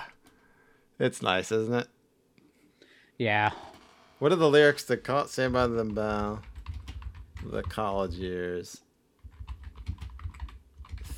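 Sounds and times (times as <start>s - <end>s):
speech: 1.0s - 2.0s, 3.2s - 6.5s, 7.4s - 8.8s
rapid typing on a computer keyboard: 5.5s - 8.2s, 9.2s - 11.1s.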